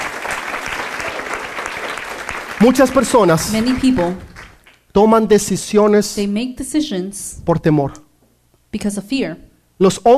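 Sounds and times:
audience applause: 0.0s - 4.8s
speech: 2.6s - 4.3s, 5.0s - 8.0s, 8.7s - 10.1s.

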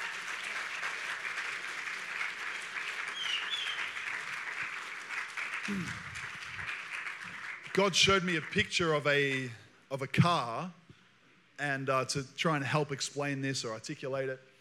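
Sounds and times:
audience applause: 0.0s - 8.8s
speech: 5.7s - 6.2s, 7.8s - 10.8s, 11.6s - 14.5s.

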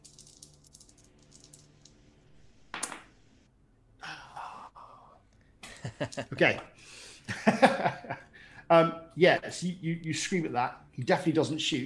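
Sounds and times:
dice rattling and clattering: 0.0s - 2.0s
speech: 6.0s - 7.7s, 8.7s - 11.8s.

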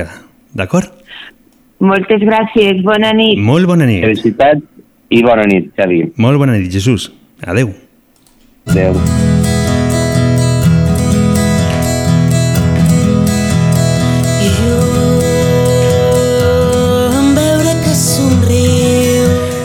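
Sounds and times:
speech: 0.0s - 7.8s, 8.6s - 9.3s
requested song played on radio: 8.8s - 19.6s.

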